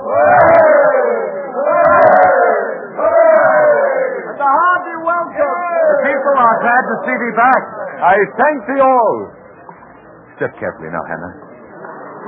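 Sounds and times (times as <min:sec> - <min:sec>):
crowd cheering a welcome: 0:00.0 - 0:09.2
speech: 0:06.6 - 0:09.4, 0:10.4 - 0:11.5.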